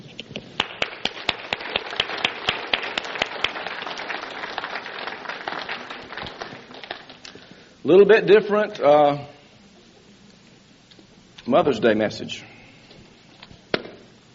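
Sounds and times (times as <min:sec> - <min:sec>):
audience applause: 0:00.6 - 0:07.4
speech: 0:07.8 - 0:09.3, 0:11.5 - 0:12.5.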